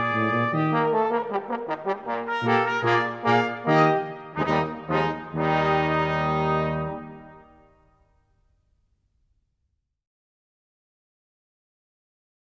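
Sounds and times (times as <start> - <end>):
brass quintet playing allegro grazioso: 0.0 - 8.0.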